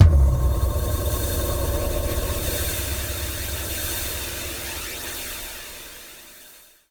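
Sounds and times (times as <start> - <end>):
hall kick drum: 0.0 - 4.6.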